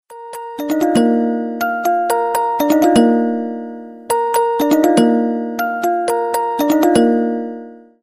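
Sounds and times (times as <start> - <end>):
standard ringtone: 0.1 - 8.0.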